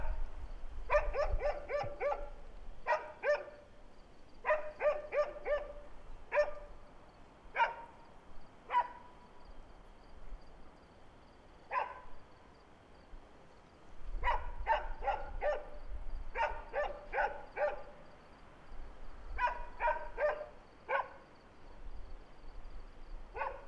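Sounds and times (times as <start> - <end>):
high insect hum: 0.1 - 23.6
dog barking: 0.9 - 3.7, 4.4 - 6.7, 7.6 - 8.0, 8.7 - 9.1, 11.7 - 12.1, 14.2 - 18.0, 19.4 - 21.2, 23.3 - 23.6.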